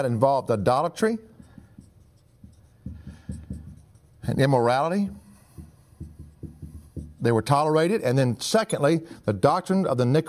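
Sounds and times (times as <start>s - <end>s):
speech: 0.0s - 1.3s, 4.3s - 5.2s, 7.2s - 10.2s
pen writing during a sermon: 1.3s - 4.5s, 5.4s - 7.3s.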